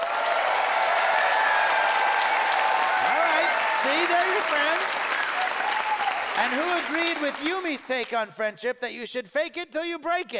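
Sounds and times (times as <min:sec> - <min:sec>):
audience applause: 0:00.0 - 0:08.1
speech: 0:03.8 - 0:05.0, 0:06.4 - 0:10.3.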